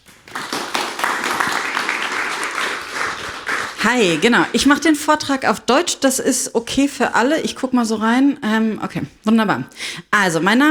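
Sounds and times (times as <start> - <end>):
audience applause: 0.0 - 4.6
speech: 3.8 - 10.6.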